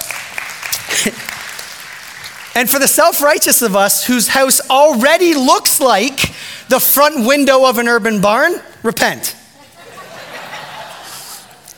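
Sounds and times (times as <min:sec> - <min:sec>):
audience applause: 0:00.0 - 0:02.6
speech: 0:01.0 - 0:01.4, 0:02.6 - 0:09.4
laughter: 0:09.6 - 0:11.7.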